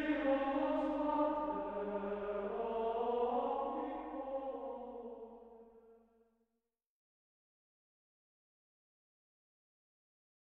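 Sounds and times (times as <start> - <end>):
monophonic Gregorian chant: 0.0 - 6.0.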